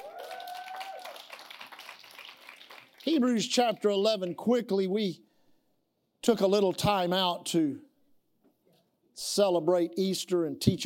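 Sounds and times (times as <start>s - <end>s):
audience hand clapping: 0.0s - 3.6s
speech: 3.0s - 5.2s, 6.3s - 7.9s, 9.2s - 10.8s.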